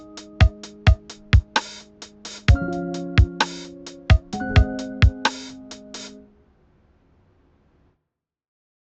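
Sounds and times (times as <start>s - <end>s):
lo-fi music: 0.0s - 6.3s.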